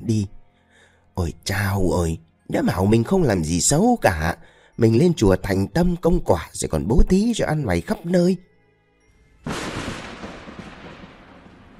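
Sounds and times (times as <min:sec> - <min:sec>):
speech: 0:00.1 - 0:00.4, 0:01.2 - 0:08.5
loud thunderclap from a lightning strike: 0:09.5 - 0:11.7.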